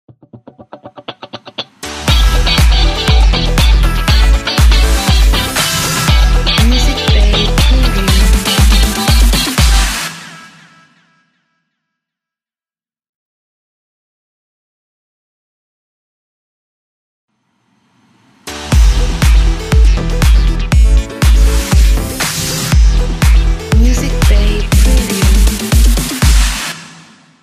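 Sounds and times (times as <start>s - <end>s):
funky house music: 0.2s - 10.2s, 18.7s - 27.0s.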